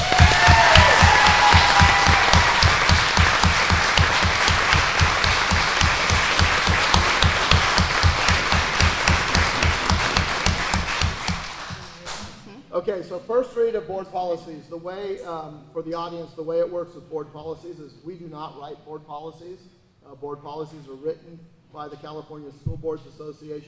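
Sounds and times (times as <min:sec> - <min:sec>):
audience applause: 0:00.0 - 0:12.2
speech: 0:13.0 - 0:23.6.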